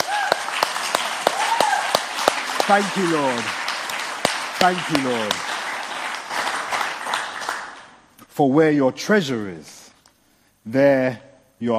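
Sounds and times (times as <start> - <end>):
worship congregation clapping in a round of applause: 0.0 - 8.1
speech: 2.7 - 3.6, 4.6 - 5.5, 8.4 - 9.8, 10.6 - 11.7.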